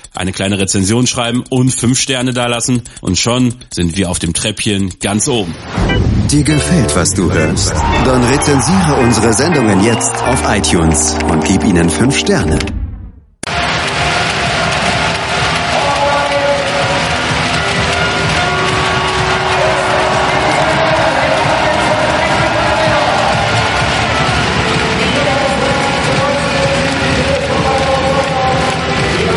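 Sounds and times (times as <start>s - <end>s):
speech: 0.2s - 12.8s
handball fans cheering and chanting: 6.4s - 12.7s, 13.4s - 29.3s.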